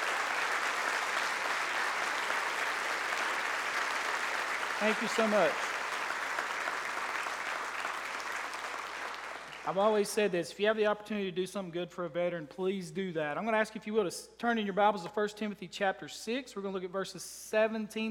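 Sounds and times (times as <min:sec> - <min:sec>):
audience applause: 0:00.0 - 0:09.8
speech: 0:04.8 - 0:05.7, 0:09.6 - 0:18.0.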